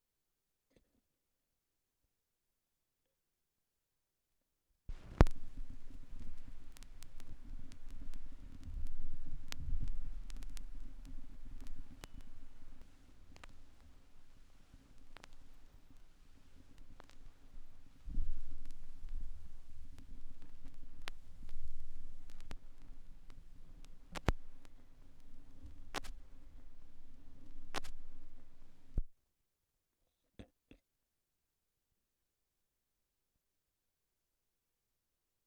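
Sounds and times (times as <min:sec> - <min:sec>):
vinyl record noise: 0:04.9 - 0:29.1.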